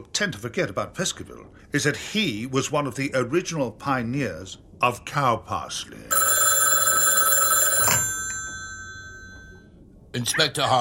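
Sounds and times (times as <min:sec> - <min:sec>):
speech: 0:00.1 - 0:06.2, 0:10.1 - 0:10.7
old telephone bell ringing: 0:06.1 - 0:09.7.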